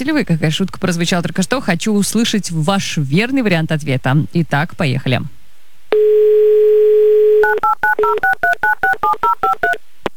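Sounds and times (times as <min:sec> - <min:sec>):
speech: 0:00.0 - 0:05.4, 0:07.5 - 0:09.8
telephone number dialing tones: 0:06.0 - 0:09.8.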